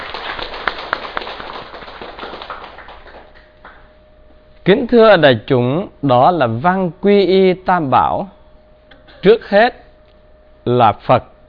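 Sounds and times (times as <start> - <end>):
crowd applauding: 0.0 - 3.9
speech: 4.7 - 8.4, 9.2 - 9.8, 10.6 - 11.3.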